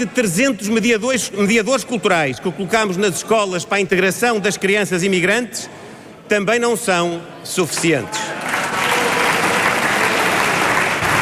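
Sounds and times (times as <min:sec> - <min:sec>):
speech: 0:00.0 - 0:08.6
applause from parliamentary benches: 0:08.3 - 0:11.2.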